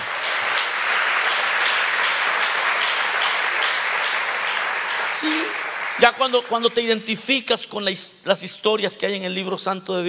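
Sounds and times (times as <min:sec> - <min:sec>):
large crowd clapping in praise: 0:00.0 - 0:07.1
speech: 0:05.2 - 0:10.0.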